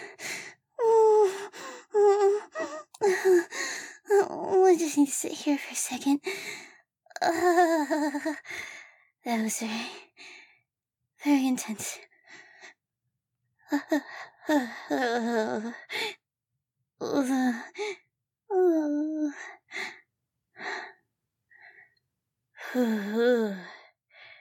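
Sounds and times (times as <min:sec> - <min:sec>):
person breathing heavily after intense physical exertion: 0:01.2 - 0:04.1
speech: 0:04.3 - 0:06.5, 0:07.2 - 0:10.3, 0:11.2 - 0:12.1, 0:13.7 - 0:16.0, 0:17.0 - 0:19.9, 0:22.7 - 0:23.8.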